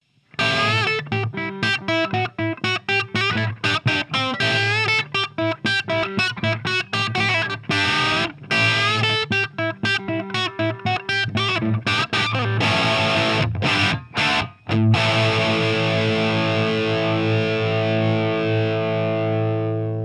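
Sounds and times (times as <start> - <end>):
light crunch electric guitar: 0.2 - 20.0.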